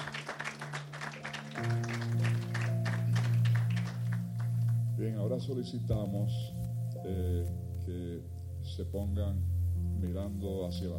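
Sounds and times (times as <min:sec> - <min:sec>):
audience applause: 0:00.0 - 0:04.8
speech: 0:05.0 - 0:10.9.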